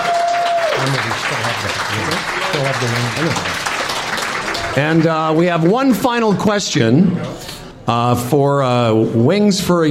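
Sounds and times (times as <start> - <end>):
audience applause: 0.0 - 6.0
speech: 0.8 - 3.8, 4.8 - 9.8.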